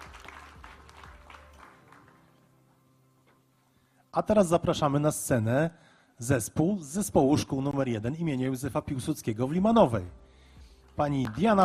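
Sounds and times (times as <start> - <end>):
audience applause: 0.0 - 2.4
speech: 4.2 - 10.2, 11.0 - 11.6.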